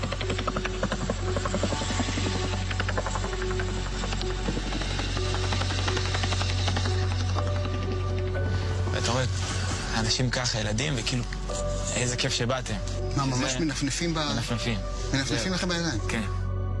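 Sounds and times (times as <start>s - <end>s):
low-flying helicopter rotor thudding overhead: 0.0s - 8.4s
deep droning helicopter engine hum: 0.0s - 16.7s
speech: 10.1s - 16.4s.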